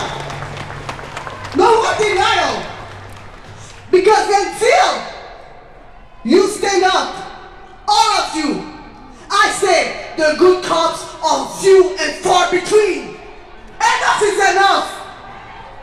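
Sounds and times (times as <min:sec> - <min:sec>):
street march and protest ambience: 0:00.0 - 0:15.8.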